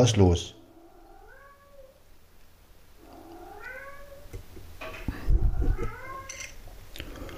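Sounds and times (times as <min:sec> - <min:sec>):
speech: 0:00.0 - 0:00.6
cat meowing: 0:00.8 - 0:02.0, 0:03.0 - 0:04.4, 0:05.3 - 0:06.4.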